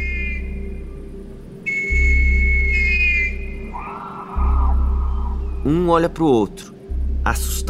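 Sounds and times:
high piercing whistle from the woods: 0:00.0 - 0:05.8
low rumbling drone: 0:00.0 - 0:07.6
speech: 0:05.7 - 0:07.6.

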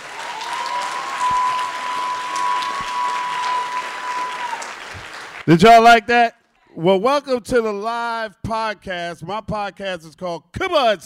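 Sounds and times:
crowd applause with whoops: 0:00.0 - 0:05.5
speech: 0:05.5 - 0:11.0.

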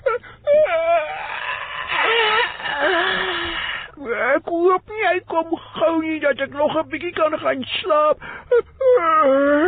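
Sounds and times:
long yawn: 0:00.2 - 0:04.0
speech: 0:05.4 - 0:09.6.

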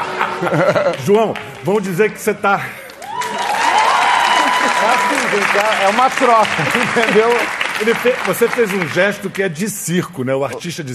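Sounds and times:
laughter: 0:00.0 - 0:01.4, 0:02.5 - 0:08.8
studio audience applause: 0:00.0 - 0:09.6
speech: 0:00.4 - 0:02.8, 0:05.3 - 0:10.9
cheering and whooping: 0:02.9 - 0:07.5.

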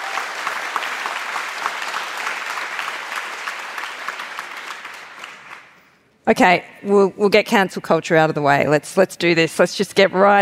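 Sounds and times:
audience applause: 0:00.0 - 0:05.9
speech: 0:06.3 - 0:10.3.

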